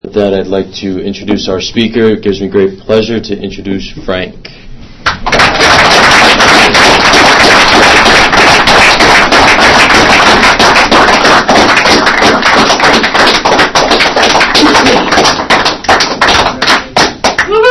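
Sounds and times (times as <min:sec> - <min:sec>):
speech: 0:00.2 - 0:04.6
audience applause: 0:05.2 - 0:17.6.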